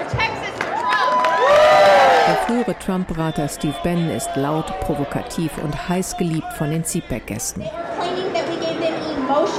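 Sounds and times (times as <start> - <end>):
crowd of Texan Trump supporters cheering: 0.1 - 7.2
high whoops and shouting voices: 0.7 - 2.6
speech: 2.5 - 7.9, 9.3 - 9.5.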